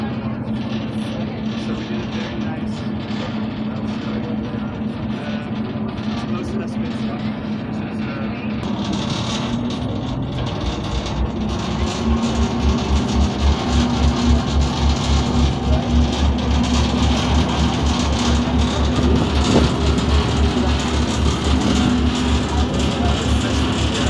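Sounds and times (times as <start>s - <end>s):
ferry engine from Amsterdam North to Central Station: 0.0s - 24.0s.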